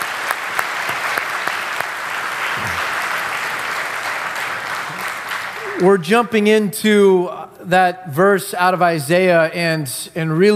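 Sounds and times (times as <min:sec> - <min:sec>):
audience applause: 0:00.0 - 0:06.0
speech: 0:05.8 - 0:10.5.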